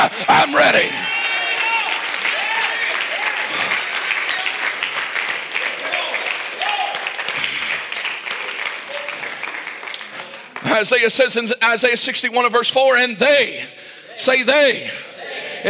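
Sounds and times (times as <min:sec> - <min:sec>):
audience shouting praise: 0:00.0 - 0:07.4
audience clapping: 0:00.0 - 0:11.3
speech: 0:10.8 - 0:15.6.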